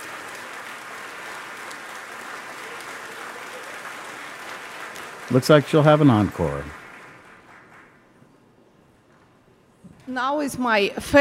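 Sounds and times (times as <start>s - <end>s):
concert audience applause in Bennett Gordon Hall: 0.0s - 8.2s
speech: 5.3s - 6.8s, 10.2s - 11.2s.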